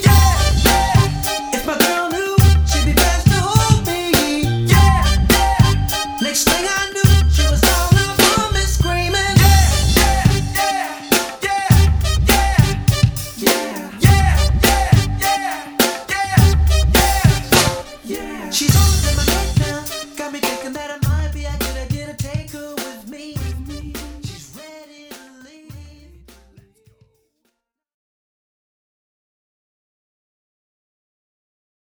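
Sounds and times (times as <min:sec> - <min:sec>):
party band playing: 0:00.0 - 0:25.4.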